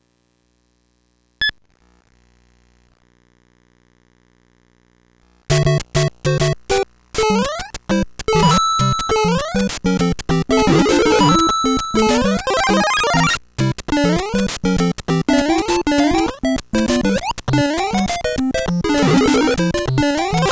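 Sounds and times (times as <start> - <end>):
Famicom cartridge game audio: 5.5 - 20.5.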